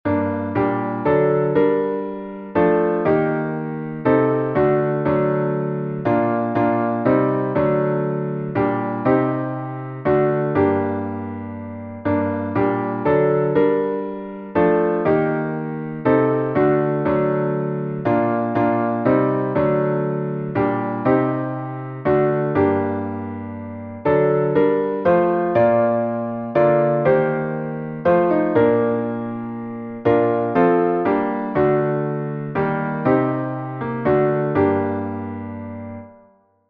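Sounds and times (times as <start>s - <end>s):
instrumental psalm music: 0.1s - 36.3s.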